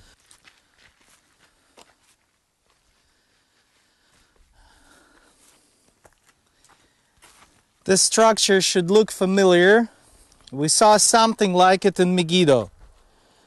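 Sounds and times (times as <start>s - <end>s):
footsteps of people walking up into the ruins of Bethsaida: 0.0s - 4.5s, 5.1s - 7.9s, 12.7s - 13.1s
speech: 7.9s - 12.8s.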